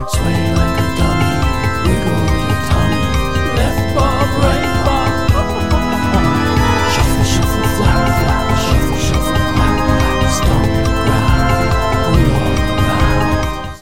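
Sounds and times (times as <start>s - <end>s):
jig ringtone: 0.8s - 13.3s
laughter: 3.7s - 12.3s.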